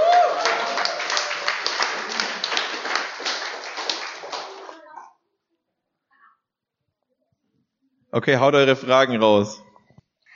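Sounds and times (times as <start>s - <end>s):
crowd applause: 0.0s - 4.9s
speech: 8.1s - 9.7s.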